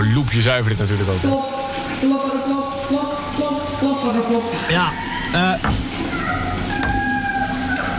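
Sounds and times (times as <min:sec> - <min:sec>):
speech: 0:00.2 - 0:05.8
tap running: 0:02.7 - 0:07.9.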